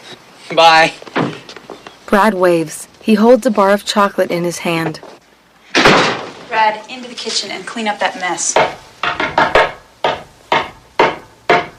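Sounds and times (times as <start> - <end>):
speech: 0.5 - 1.0, 2.1 - 5.1, 6.6 - 8.8
knocking on the back door: 8.6 - 11.7.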